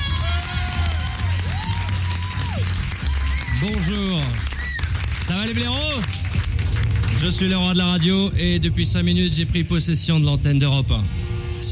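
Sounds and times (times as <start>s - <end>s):
crowd cheering and whooping to welcome a performer: 0.0s - 5.4s
speech: 3.6s - 4.5s, 5.3s - 6.1s, 7.2s - 11.7s.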